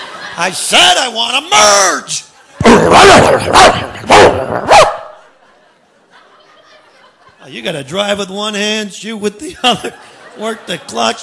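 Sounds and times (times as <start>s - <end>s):
laughter: 0.0s - 1.0s, 2.0s - 8.1s, 9.3s - 11.2s
speech: 0.4s - 4.9s, 7.4s - 11.2s
dog barking: 2.9s - 5.2s.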